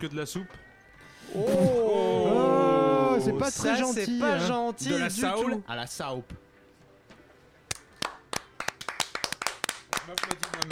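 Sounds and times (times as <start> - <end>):
speech: 0.0 - 0.7, 1.3 - 2.5, 3.2 - 6.4
audience clapping: 7.7 - 10.6.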